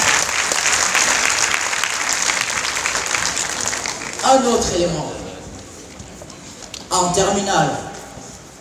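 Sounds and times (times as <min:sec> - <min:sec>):
audience applause: 0:00.0 - 0:04.4
speech: 0:04.3 - 0:05.2, 0:07.0 - 0:07.9.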